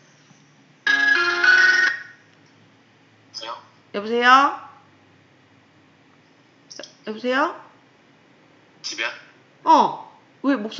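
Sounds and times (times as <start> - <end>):
phone ringtone for an incoming call: 0.8 - 2.3
speech: 4.0 - 4.6, 7.1 - 7.6, 9.0 - 10.7.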